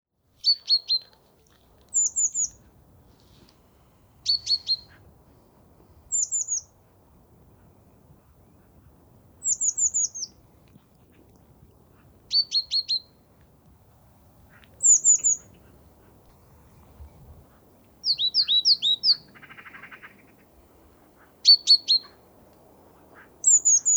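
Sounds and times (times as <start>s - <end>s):
Great tit calls: 1.9s - 2.7s, 4.2s - 5.0s, 6.1s - 6.8s, 9.4s - 10.4s, 12.3s - 13.3s, 14.4s - 23.9s.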